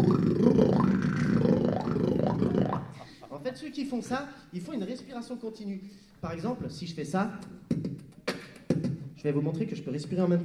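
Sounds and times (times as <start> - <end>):
voice imitating a didgeridoo drone: 0.0 - 3.0
speech: 3.6 - 7.6, 9.2 - 10.4.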